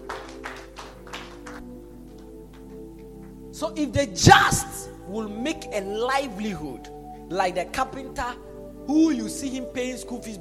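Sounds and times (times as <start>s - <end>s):
audience clapping: 0.0s - 3.4s
speech: 3.6s - 10.3s.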